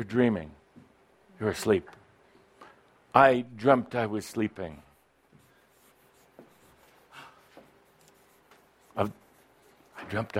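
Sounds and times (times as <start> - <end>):
speech: 0.0 - 0.6, 1.4 - 2.0, 3.1 - 4.9, 9.0 - 9.2, 10.1 - 10.3
pen scratching of handwriting: 5.0 - 10.3.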